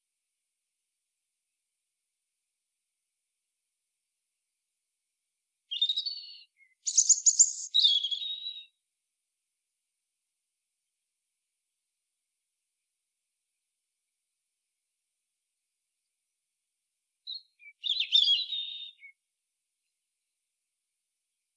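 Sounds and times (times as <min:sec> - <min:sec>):
European robin Erithacus rubecula singing: 0:05.7 - 0:08.7, 0:17.3 - 0:19.2.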